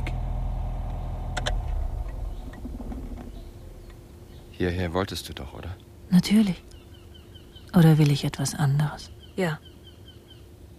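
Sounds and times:
faint crunching under car tires: 0:00.0 - 0:04.0
car engine rumbling as the car pulls into a parking lot beside an inn: 0:00.0 - 0:04.7
speech: 0:04.6 - 0:06.7, 0:07.7 - 0:09.7.

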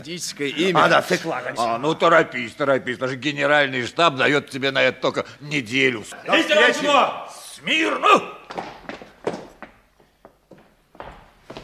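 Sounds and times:
speech: 0:00.0 - 0:08.7
stomping footsteps: 0:08.4 - 0:11.6.

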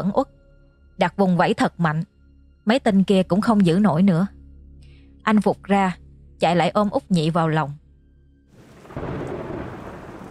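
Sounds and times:
speech: 0:00.0 - 0:00.4, 0:01.0 - 0:04.4, 0:05.2 - 0:07.8
deep rumble of thunder: 0:08.6 - 0:10.2
sudden heavy rain falling: 0:08.6 - 0:10.2.

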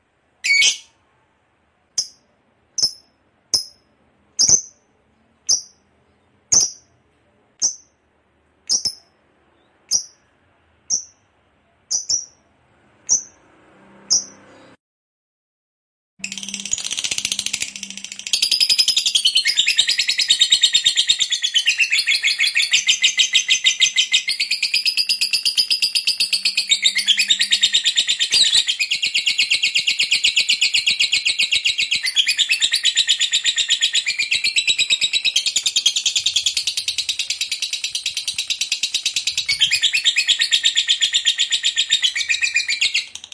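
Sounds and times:
lovebird chattering: 0:02.8 - 0:03.8, 0:04.4 - 0:04.8, 0:05.5 - 0:05.8, 0:06.5 - 0:06.9, 0:07.6 - 0:07.9, 0:08.7 - 0:09.1, 0:09.9 - 0:10.2, 0:10.9 - 0:11.2, 0:11.9 - 0:12.4, 0:16.2 - 0:43.3.

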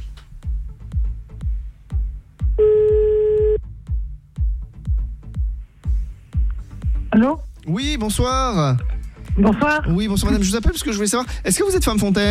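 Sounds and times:
regular low thumping beat: 0:00.0 - 0:12.2
telephone call dialing electronic beep: 0:02.6 - 0:03.6
speech: 0:07.2 - 0:12.2.

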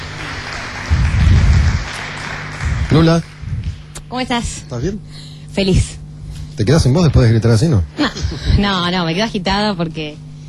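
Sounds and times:
audience applause: 0:00.0 - 0:03.9
speech: 0:02.9 - 0:03.3, 0:04.1 - 0:06.0, 0:06.6 - 0:10.3.

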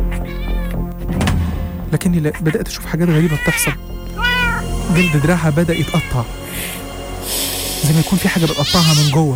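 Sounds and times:
cats meowing and caterwauling: 0:00.1 - 0:00.8, 0:03.1 - 0:06.5, 0:08.3 - 0:09.3
speech: 0:02.0 - 0:03.9, 0:04.9 - 0:09.3.

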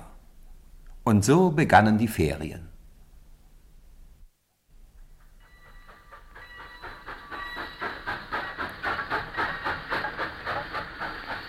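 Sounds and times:
speech: 0:01.1 - 0:02.7
steam locomotive chuffing: 0:05.0 - 0:11.4.

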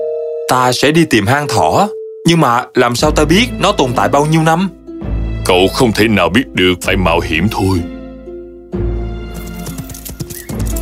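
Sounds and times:
speech: 0:00.5 - 0:04.8, 0:05.4 - 0:08.0
horse hooves galloping with a rider into a forest: 0:09.3 - 0:10.8.

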